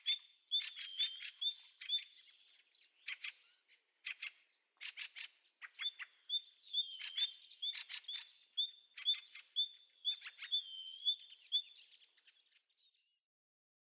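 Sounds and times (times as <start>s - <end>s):
great tit calling: 0.0s - 2.3s, 5.7s - 11.8s.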